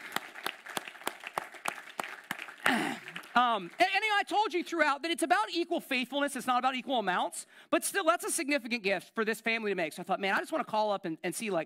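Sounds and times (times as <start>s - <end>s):
clapping: 0.0s - 4.0s
speech: 3.4s - 11.6s.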